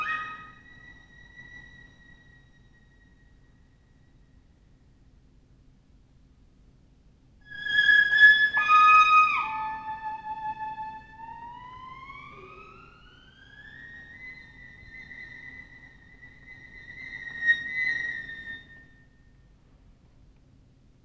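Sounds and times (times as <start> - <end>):
solo violin: 0.0 - 3.2, 7.5 - 18.9.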